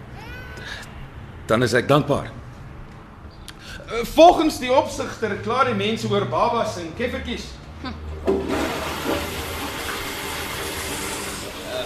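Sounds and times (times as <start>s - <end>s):
speech: 1.5s - 2.4s, 4.0s - 8.0s
toilet flushing: 8.2s - 11.8s.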